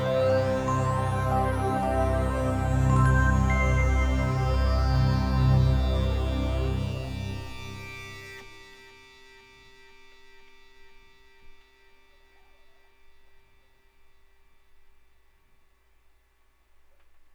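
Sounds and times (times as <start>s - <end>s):
reflective instrumental music: 0.0s - 8.4s.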